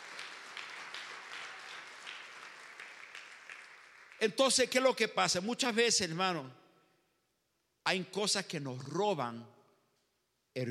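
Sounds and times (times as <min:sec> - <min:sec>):
audience applauding loudly: 0:00.0 - 0:04.6
speech: 0:04.2 - 0:06.6, 0:07.9 - 0:09.6.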